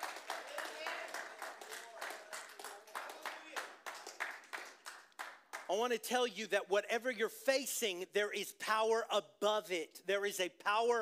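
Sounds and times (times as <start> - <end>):
audience clapping hands: 0.0 - 6.0
speech: 5.7 - 11.0.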